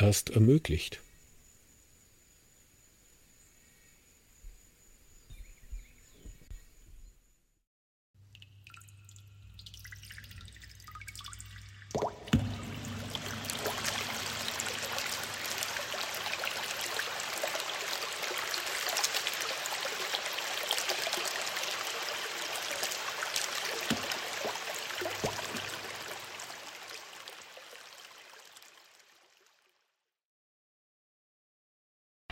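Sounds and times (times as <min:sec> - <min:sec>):
speech: 0:00.0 - 0:01.0
flowing stream of water: 0:08.7 - 0:29.8.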